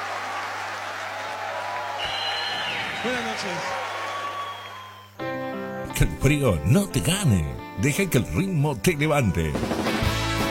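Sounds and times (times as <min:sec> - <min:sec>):
audience applause: 0:00.0 - 0:05.2
speech: 0:03.0 - 0:03.8, 0:06.0 - 0:09.9.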